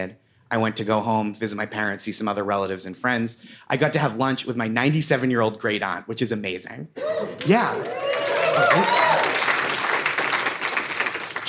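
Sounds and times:
speech: 0.0 - 9.3
audience applause: 7.0 - 11.4.

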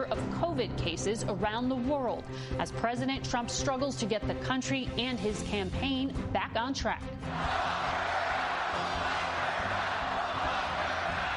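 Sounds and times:
speech: 0.6 - 8.1
thousands of supporters cheering President Trump indoors: 7.3 - 11.3.

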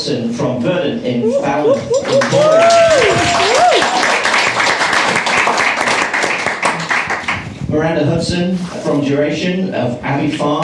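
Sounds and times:
speech: 0.0 - 2.1, 8.2 - 10.6
audience applause at a craft beer talk: 1.8 - 7.4.

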